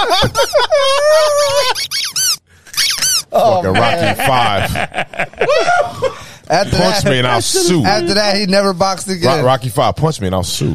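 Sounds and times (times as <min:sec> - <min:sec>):
laughter: 0:00.0 - 0:01.8, 0:03.6 - 0:08.2
speech: 0:00.1 - 0:02.0, 0:03.4 - 0:10.7
rubber duck squeaking: 0:01.6 - 0:03.3.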